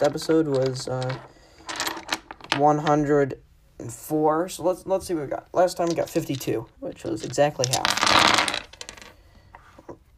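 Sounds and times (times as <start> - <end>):
speech: 0.0 - 1.4, 2.6 - 8.4
dice being rolled: 0.0 - 3.1, 5.6 - 9.2.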